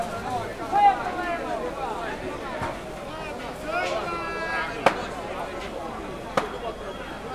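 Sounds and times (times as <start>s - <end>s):
market vendors shouting: 0.1s - 7.2s.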